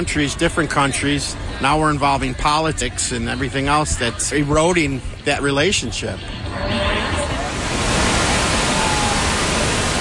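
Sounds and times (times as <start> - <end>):
speech: 0.0 - 7.0
roaring waterfall: 6.5 - 9.9.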